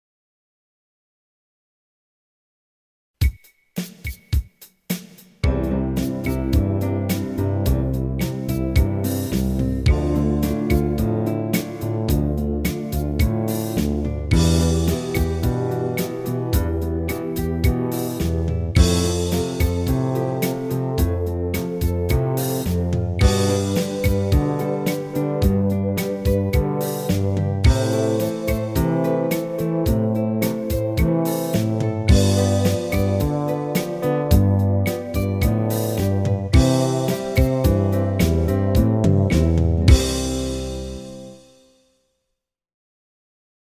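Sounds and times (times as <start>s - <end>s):
slow piano piece in first inversion for left hand: 5.4s - 41.5s.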